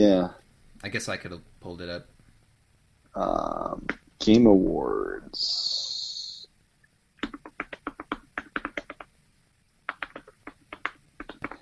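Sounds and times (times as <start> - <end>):
speech: 0.0 - 2.1, 3.1 - 5.9
loud keyboard typing: 7.2 - 9.1, 9.9 - 11.6.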